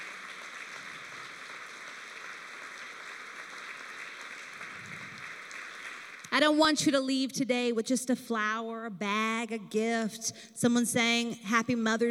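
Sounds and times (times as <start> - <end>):
church audience applauding: 0.0 - 6.3
speech: 6.4 - 12.0.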